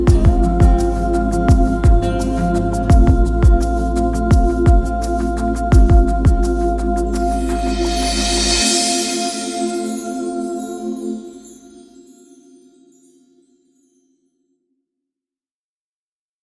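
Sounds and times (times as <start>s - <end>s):
choir interlude: 0.1s - 12.1s.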